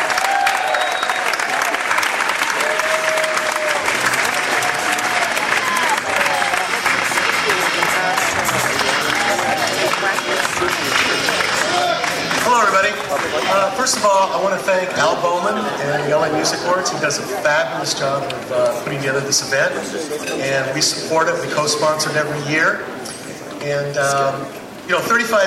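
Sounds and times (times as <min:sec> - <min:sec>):
cheers and whistles: 0:00.0 - 0:07.1
large audience applause: 0:00.0 - 0:14.3
speech: 0:13.9 - 0:25.4.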